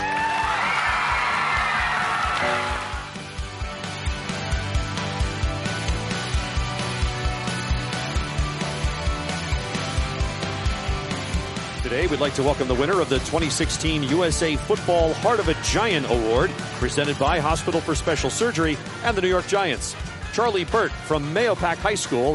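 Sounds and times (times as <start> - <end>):
audience applause and cheering: 0.0 - 3.4
music with thumping beat: 3.0 - 22.3
speech: 11.9 - 22.3.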